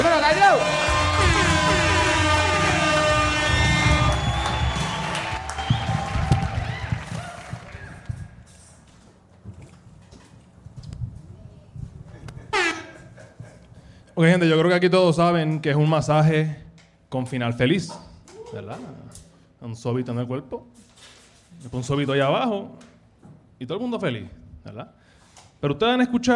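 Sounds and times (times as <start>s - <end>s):
bright horn-like musical sting: 0.0s - 6.2s
short tonal blast: 0.0s - 6.6s
audience scattered applause: 0.0s - 8.3s
speech: 14.2s - 20.8s, 21.6s - 22.9s, 23.6s - 25.0s, 25.6s - 26.3s.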